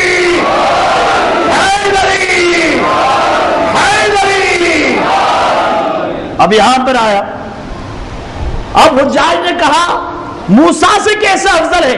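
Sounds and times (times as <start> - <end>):
crowd shouting a religious slogan in reply to Naara-e-Haidari: 0.0 - 6.3
speech: 6.4 - 7.4, 8.8 - 11.9.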